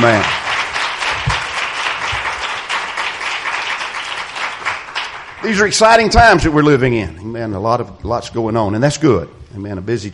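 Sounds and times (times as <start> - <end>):
speech: 0.0 - 0.4, 5.4 - 10.1
audience clapping in praise: 0.0 - 6.3.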